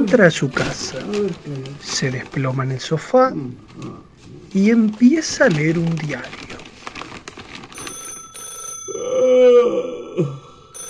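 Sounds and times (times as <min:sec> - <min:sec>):
speech: 0:00.1 - 0:06.4, 0:10.2 - 0:10.4
telephone bell ringing: 0:07.8 - 0:09.3, 0:10.7 - 0:10.8
long low voiced groan: 0:08.9 - 0:10.8.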